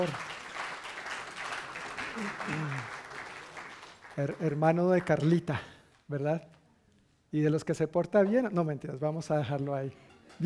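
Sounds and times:
speech: 0:00.0 - 0:00.3, 0:02.2 - 0:03.0, 0:04.2 - 0:06.5, 0:07.3 - 0:10.4
crowd clapping: 0:00.0 - 0:06.6.

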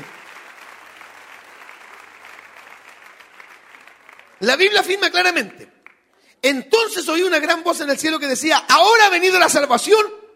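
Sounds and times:
audience applauding: 0:00.0 - 0:06.3
speech: 0:04.4 - 0:05.8, 0:06.4 - 0:10.2.

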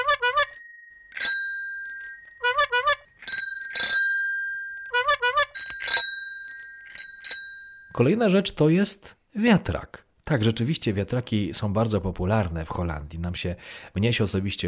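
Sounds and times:
bicycle bell ringing: 0:00.2 - 0:08.3
speech: 0:08.0 - 0:14.6.

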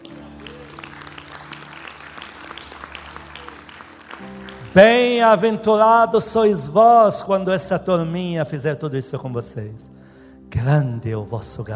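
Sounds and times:
audience applause: 0:00.0 - 0:05.6
speech: 0:04.7 - 0:11.7.

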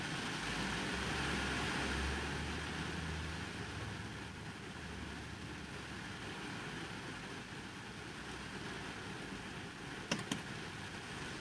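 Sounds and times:
heavy rain drumming on a car: 0:00.0 - 0:11.3
sharp clicks: 0:10.1 - 0:10.5.

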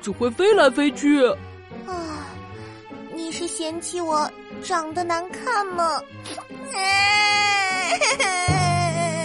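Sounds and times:
speech: 0:00.0 - 0:02.0, 0:03.2 - 0:08.6
voice imitating a winged insect creature crying: 0:06.7 - 0:09.2.

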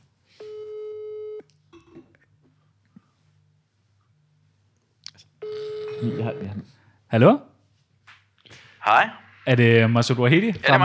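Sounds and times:
outgoing phone call ringback tone: 0:00.4 - 0:01.4, 0:05.4 - 0:06.6
speech: 0:06.0 - 0:07.5, 0:08.9 - 0:10.8.

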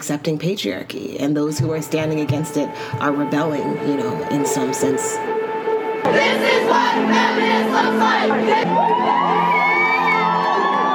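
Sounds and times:
speech: 0:00.0 - 0:05.4, 0:06.1 - 0:09.6
large crowd of marching women cheering: 0:08.2 - 0:10.9.

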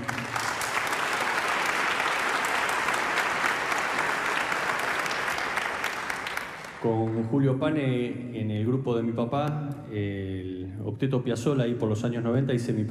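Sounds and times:
audience applause: 0:00.0 - 0:07.2
speech: 0:06.8 - 0:12.8.

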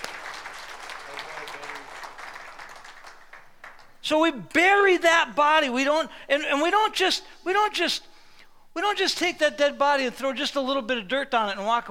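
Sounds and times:
audience applause: 0:00.0 - 0:04.0
speech: 0:04.1 - 0:08.1, 0:08.8 - 0:11.9.

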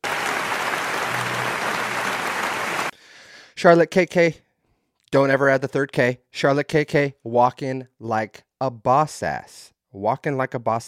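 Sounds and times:
group applause: 0:00.0 - 0:03.0
speech: 0:03.6 - 0:04.4, 0:05.1 - 0:10.8.

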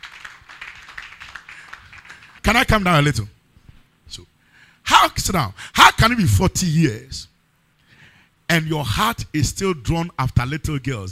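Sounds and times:
audience clapping hands: 0:00.0 - 0:02.6
speech: 0:02.5 - 0:03.4, 0:05.0 - 0:07.3, 0:08.5 - 0:11.1.

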